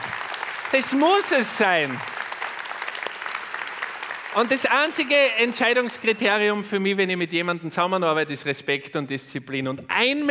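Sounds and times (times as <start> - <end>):
audience applause: 0.0 - 6.1
speech: 0.7 - 2.2, 4.4 - 10.3.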